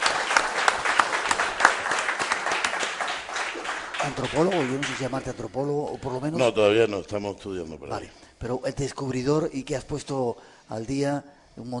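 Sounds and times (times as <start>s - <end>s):
audience applause: 0.0s - 5.3s
speech: 4.0s - 11.7s.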